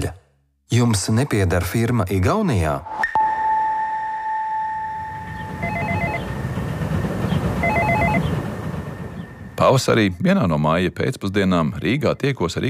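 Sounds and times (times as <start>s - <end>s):
speech: 0.0s - 3.1s, 9.6s - 12.6s
apartment-building intercom electronic tone: 3.0s - 6.8s, 7.6s - 8.3s
apartment-building intercom pulsing ring tones calling a flat: 3.2s - 8.4s.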